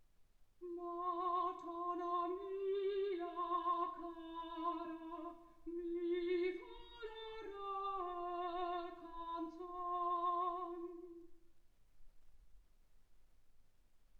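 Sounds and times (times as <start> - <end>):
soprano singing: 0.6 - 11.5.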